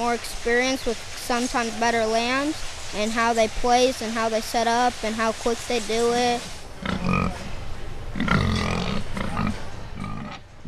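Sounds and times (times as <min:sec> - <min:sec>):
speech: 0:00.0 - 0:06.6
pig grunting on a livestock scale: 0:06.8 - 0:07.5, 0:08.2 - 0:10.6.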